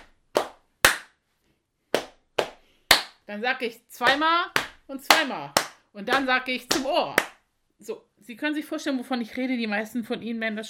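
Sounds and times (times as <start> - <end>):
clapping on thighs: 0.0 - 1.2, 2.0 - 3.2, 4.0 - 7.4
speech: 3.3 - 10.6.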